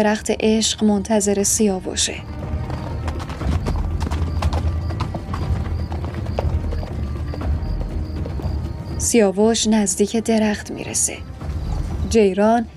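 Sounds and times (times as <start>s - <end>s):
speech: 0.0s - 2.6s, 9.1s - 11.3s, 12.1s - 12.7s
horse hooves clip-clopping: 2.2s - 9.3s.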